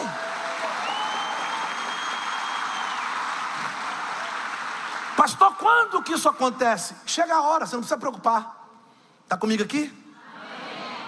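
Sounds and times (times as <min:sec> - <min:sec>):
audience applause: 0:00.0 - 0:05.3
speech: 0:05.2 - 0:08.6, 0:09.3 - 0:10.0.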